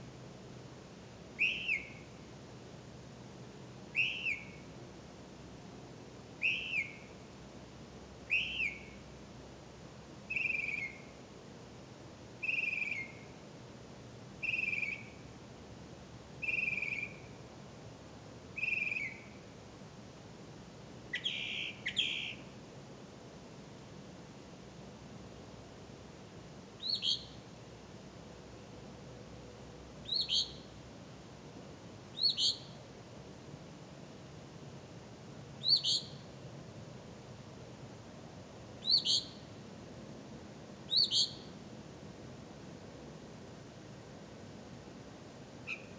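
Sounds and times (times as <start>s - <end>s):
low hiss: 0.0s - 45.9s
bird chirps: 1.4s - 2.1s, 4.0s - 4.6s, 6.4s - 7.1s, 8.3s - 9.0s, 10.3s - 11.1s, 12.4s - 13.3s, 14.4s - 15.2s, 16.4s - 17.3s, 18.6s - 19.3s, 21.1s - 22.5s, 26.8s - 27.4s, 30.0s - 30.7s, 32.2s - 32.8s, 35.6s - 36.3s, 38.8s - 39.5s, 40.9s - 41.5s, 45.6s - 45.9s.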